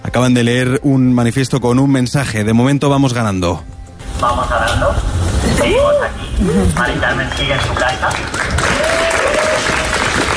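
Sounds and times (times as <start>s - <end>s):
speech: 0.2s - 8.5s
crowd applauding at protest camp: 6.6s - 10.3s.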